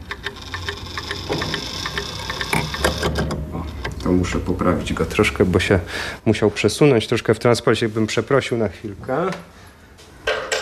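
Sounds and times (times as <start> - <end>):
mechanical clock ticking: 0.0 - 4.6
speech: 4.1 - 9.6.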